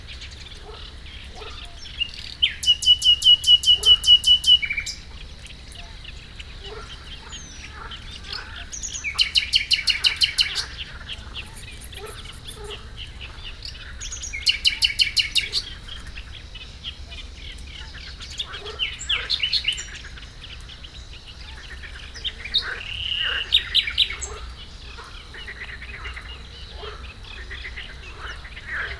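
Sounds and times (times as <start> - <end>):
bird singing at Hortobágy fish ponds: 0.0 - 28.9
frog chorus at Hortobágy fish ponds: 0.0 - 28.9.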